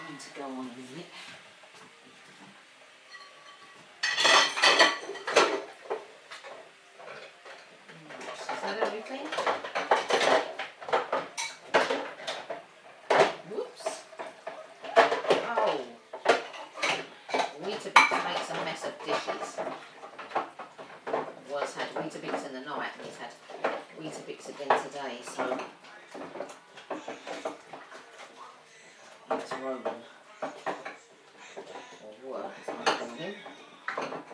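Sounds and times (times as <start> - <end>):
speech: 0.4 - 1.4
dishes and cutlery loaded into a dishwasher: 3.1 - 28.3, 32.6 - 34.3.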